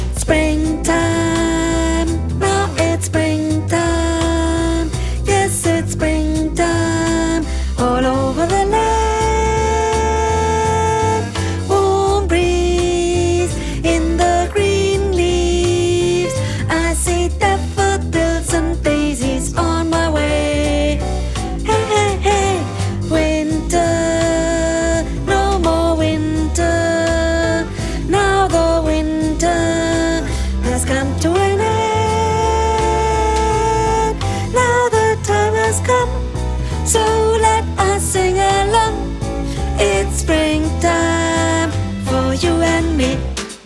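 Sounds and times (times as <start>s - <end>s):
soprano voice: 0.2s - 43.4s.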